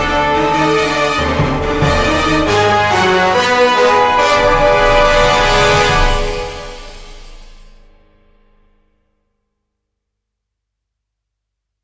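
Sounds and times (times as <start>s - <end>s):
tension music: 0.0s - 8.6s.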